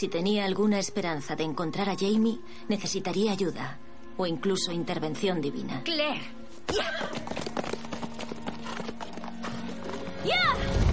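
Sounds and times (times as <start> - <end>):
speech: 0.0 - 7.8, 10.3 - 10.8
horse hooves clip-clopping: 6.6 - 10.5.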